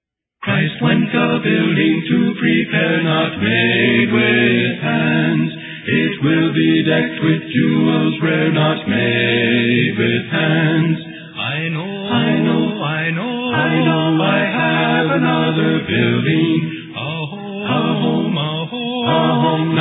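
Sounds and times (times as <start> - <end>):
a cappella hymn: 0.4 - 19.7.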